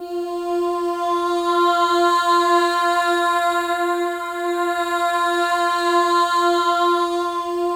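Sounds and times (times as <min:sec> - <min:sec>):
choir of voices: 0:00.0 - 0:07.7.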